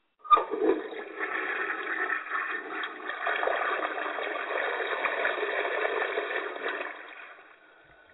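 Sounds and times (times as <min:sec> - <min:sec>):
water gurgling down a drain: 0:00.3 - 0:08.1.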